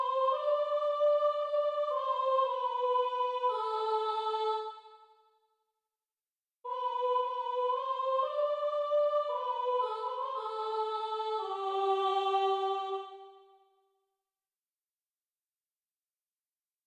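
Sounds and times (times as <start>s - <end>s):
soprano singing: 0.0s - 4.9s, 6.7s - 13.5s.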